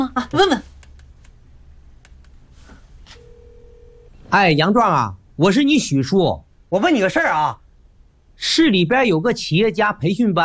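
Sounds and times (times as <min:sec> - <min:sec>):
speech: 0:00.0 - 0:00.7, 0:04.3 - 0:07.6, 0:08.4 - 0:10.4
faint low hum: 0:00.0 - 0:10.4
steady telephone tone: 0:03.2 - 0:04.2.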